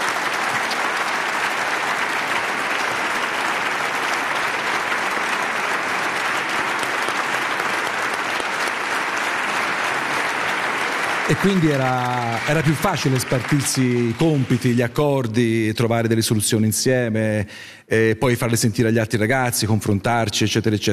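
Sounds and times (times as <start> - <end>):
audience applause: 0.0 - 15.2
speech: 11.3 - 20.9.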